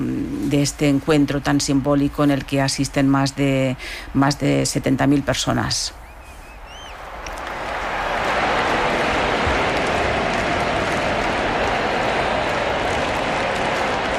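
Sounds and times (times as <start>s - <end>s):
speech: 0.0s - 6.0s
stadium crowd applauding: 6.7s - 14.1s.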